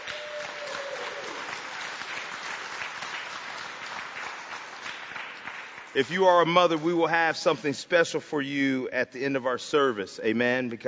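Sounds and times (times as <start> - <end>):
crowd applause: 0.0 - 6.8
speech: 6.0 - 10.8.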